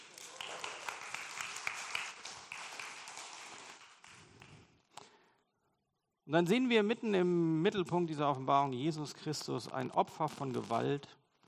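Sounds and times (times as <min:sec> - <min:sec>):
audience applause: 0:00.0 - 0:04.7
speech: 0:06.3 - 0:11.2.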